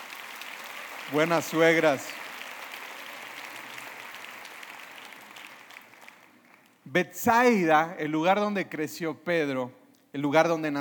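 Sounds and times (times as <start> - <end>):
audience applause: 0.0 - 6.8
speech: 1.1 - 2.2, 6.9 - 10.8.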